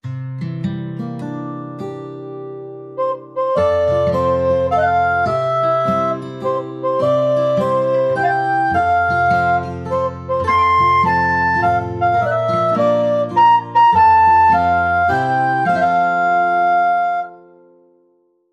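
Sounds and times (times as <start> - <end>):
recorder melody: 3.0 - 17.6.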